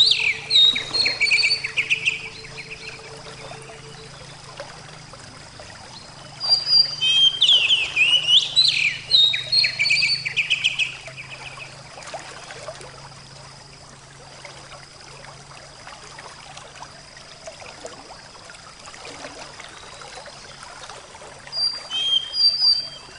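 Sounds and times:
Oriental magpie-robin song: 0.0s - 5.0s, 5.8s - 11.8s, 21.5s - 23.1s.

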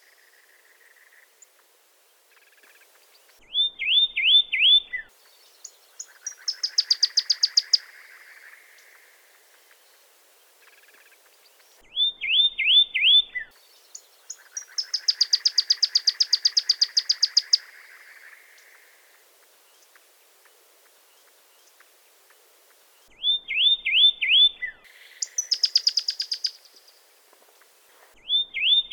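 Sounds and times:
Pyrrhuloxia singing slurred whistles and sharp notes: 3.5s - 9.0s, 11.6s - 18.3s, 23.1s - 27.0s, 28.2s - 28.9s.

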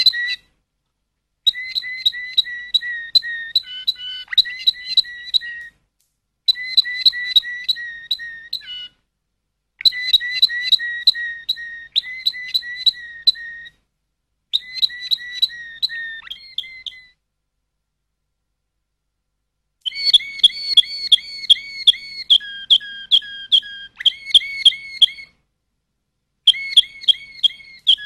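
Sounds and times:
Waterslager canary song: 0.0s - 0.6s, 1.4s - 5.8s, 6.5s - 9.0s, 9.8s - 13.8s, 14.5s - 17.2s, 19.8s - 25.4s, 26.4s - 28.0s.

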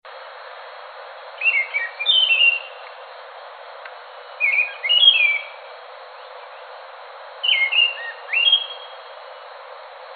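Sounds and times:
Scaly thrush singing whistled phrases: 1.4s - 2.8s, 4.4s - 5.6s, 7.4s - 9.0s.

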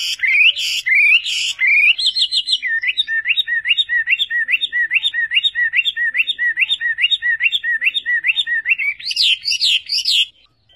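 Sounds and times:
Chinese hwamei whistling song: 0.0s - 10.7s.

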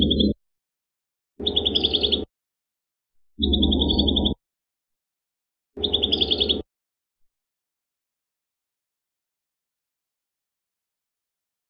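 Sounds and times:
prinia singing trills: 0.0s - 0.4s, 1.4s - 2.3s, 3.4s - 4.4s, 5.8s - 6.6s.

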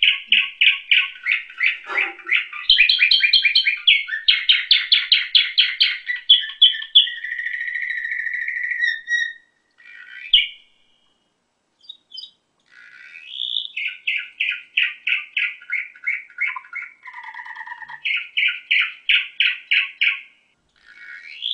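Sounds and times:
canary singing whistles and trills: 0.0s - 11.2s, 11.8s - 21.5s.

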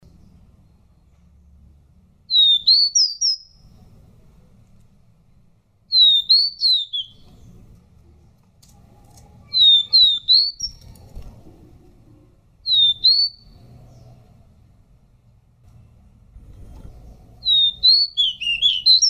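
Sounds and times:
Pied bush chat song: 0.0s - 4.2s, 5.3s - 8.6s, 9.2s - 11.2s, 12.0s - 14.5s, 16.8s - 19.0s.

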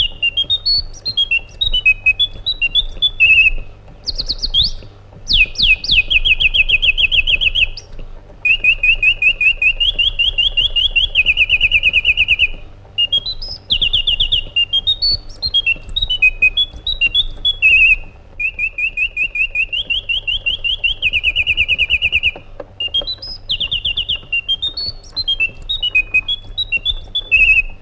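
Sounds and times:
white-eared bulbul singing: 0.0s - 27.8s.

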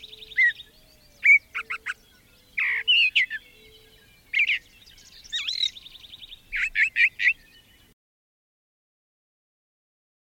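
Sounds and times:
brown thrasher song: 0.0s - 8.0s.

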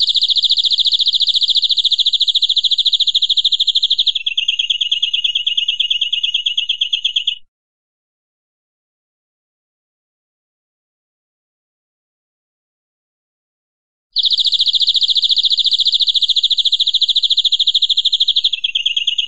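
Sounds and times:
European greenfinch buzzy trill: 0.0s - 7.4s, 14.2s - 19.2s.

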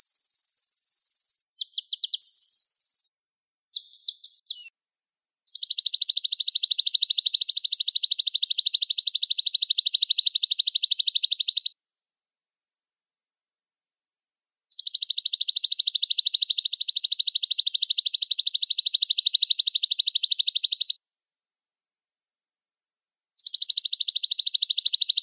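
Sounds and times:
sunbird song used as a lure recording: 0.0s - 3.1s, 3.7s - 4.7s, 5.5s - 11.7s, 14.7s - 21.0s, 23.4s - 25.2s.

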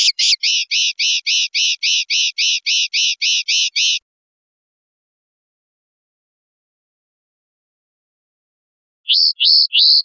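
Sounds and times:
European goldfinch song buzzy rasping notes: 0.0s - 4.0s, 9.1s - 10.0s.

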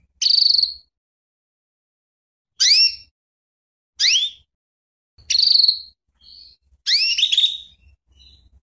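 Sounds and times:
female canary calling with sharp sweeping chirps and buzzy notes: 0.0s - 0.9s, 2.6s - 3.2s, 4.0s - 4.5s, 5.2s - 8.6s.

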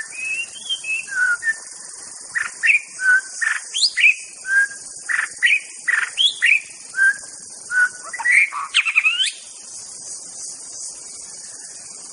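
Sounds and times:
White-rumped Shama song in forest: 0.0s - 9.5s.

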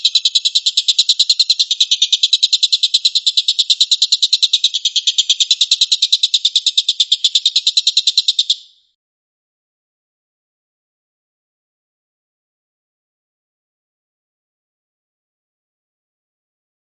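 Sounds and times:
stork-billed kingfisher rapid rattling call: 0.0s - 8.7s.

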